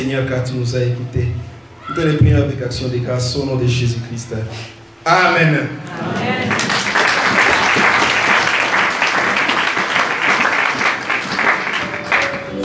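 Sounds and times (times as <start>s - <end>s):
speech: 0.1s - 6.4s
congregation applauding in a church after prayers: 6.2s - 12.6s.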